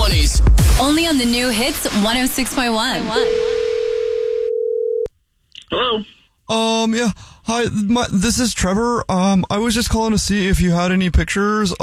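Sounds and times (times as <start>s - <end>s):
speech: 0.8s - 3.5s, 5.7s - 11.8s
telephone dial tone opening a radio prank call: 3.2s - 5.1s.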